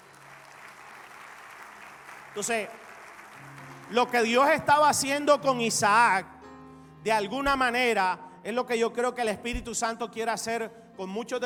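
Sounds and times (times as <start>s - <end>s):
audience clapping: 0.0s - 5.1s
speech: 2.4s - 2.8s, 3.9s - 6.3s, 7.0s - 11.4s.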